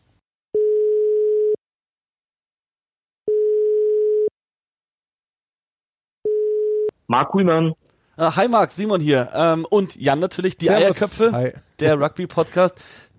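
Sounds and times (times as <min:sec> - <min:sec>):
phone ringback tone of an outgoing call: 0:00.6 - 0:01.6, 0:03.3 - 0:04.3, 0:06.2 - 0:06.9
speech: 0:07.1 - 0:13.1.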